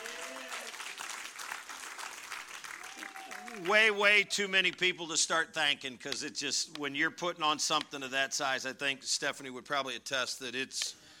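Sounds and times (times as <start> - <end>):
crowd applauding: 0.0 - 4.3
speech: 3.6 - 11.0.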